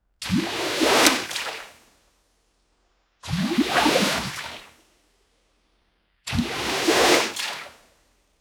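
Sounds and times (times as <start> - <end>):
strong splash and push in a pool: 0.2 - 1.8, 3.3 - 4.7, 6.3 - 7.7.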